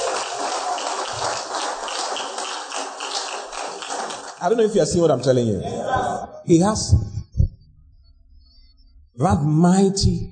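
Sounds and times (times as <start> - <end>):
audience applause: 0.0 - 5.3
speech: 4.4 - 7.1, 9.2 - 10.3.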